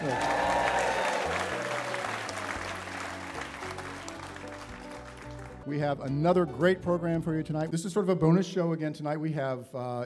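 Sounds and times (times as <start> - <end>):
live studio audience applause at Pensacola's Museum of Commerce: 0.0 - 5.6
speech: 5.7 - 10.0.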